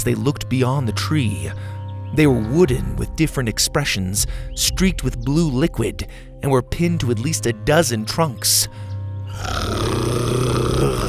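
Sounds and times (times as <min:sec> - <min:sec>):
speech: 0:00.0 - 0:10.2
low rumbling animal growl: 0:09.3 - 0:11.0.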